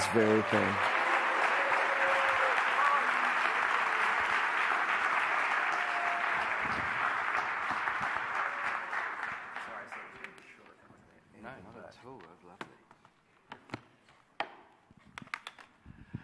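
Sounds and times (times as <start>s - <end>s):
audience applause welcoming a speaker: 0.0s - 10.4s
speech: 0.1s - 0.9s.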